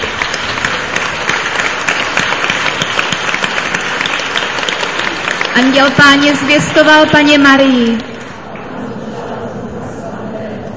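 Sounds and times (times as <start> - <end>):
congregation clapping hands: 0.0 - 6.8, 7.6 - 8.7
speech: 5.6 - 8.1.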